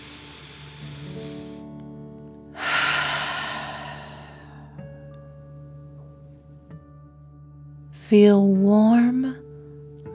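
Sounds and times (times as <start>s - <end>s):
deep dragon breath exhale: 0.0s - 1.7s, 2.6s - 4.9s
speech: 8.1s - 9.4s.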